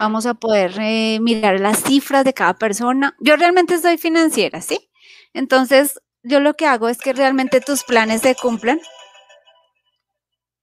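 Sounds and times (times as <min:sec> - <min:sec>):
speech: 0:00.0 - 0:09.0
phone alarm chiming: 0:07.0 - 0:09.9.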